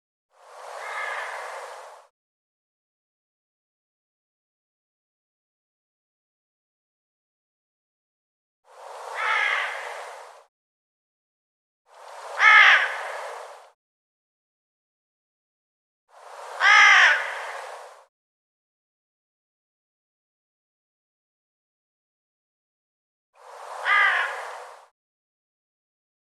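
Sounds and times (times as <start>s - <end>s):
harsh bird calls: 0.8s - 1.6s, 9.1s - 10.0s, 12.4s - 13.3s, 16.6s - 17.6s, 23.8s - 24.7s.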